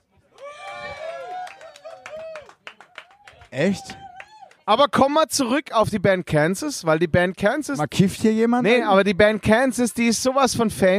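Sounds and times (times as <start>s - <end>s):
scattered sharp hand claps: 0.4s - 4.6s
person whooping and cheering: 0.4s - 4.7s
speech: 3.5s - 4.0s, 4.7s - 10.9s.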